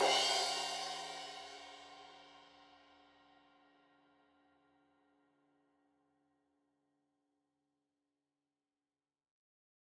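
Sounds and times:
15 inch crash cymbal edge hit: 0:00.0 - 0:01.7.

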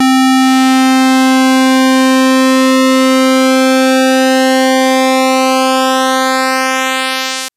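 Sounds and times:
synth pulse sweep in C3: 0:00.0 - 0:07.5.

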